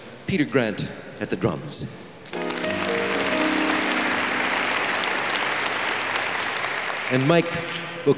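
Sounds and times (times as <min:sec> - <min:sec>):
speech: 0:00.3 - 0:02.1, 0:07.1 - 0:08.1
audience applause: 0:02.3 - 0:07.8.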